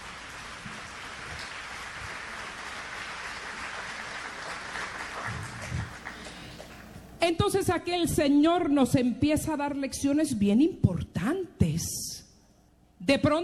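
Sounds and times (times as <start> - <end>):
audience applause: 0.0 - 7.0
speech: 7.2 - 11.5, 13.1 - 13.4.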